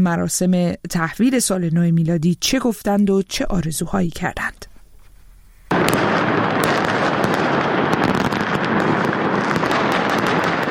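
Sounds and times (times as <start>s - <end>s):
speech: 0.0s - 4.7s
fireworks at New Year celebration in Umayyad Square, Damascus: 5.7s - 10.6s.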